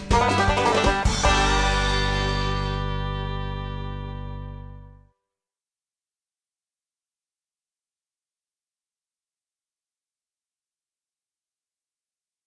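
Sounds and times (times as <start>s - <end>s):
fiddle: 0.1s - 4.9s.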